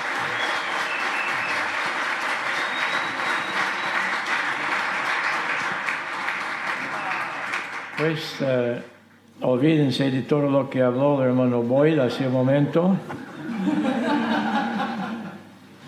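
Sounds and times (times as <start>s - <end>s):
audience applause welcoming a guest speaker: 0.0s - 8.3s
speech: 8.0s - 13.9s
laughter: 13.2s - 15.5s.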